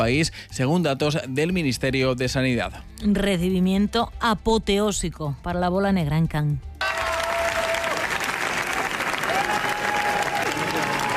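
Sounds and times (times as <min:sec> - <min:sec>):
speech: 0:00.0 - 0:06.7
prolonged audience applause at film premiere: 0:06.8 - 0:11.1.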